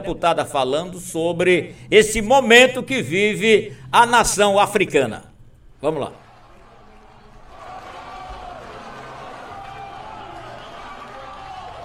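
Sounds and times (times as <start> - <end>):
speech: 0.0 - 6.2
people clapping in parliament: 6.2 - 11.8.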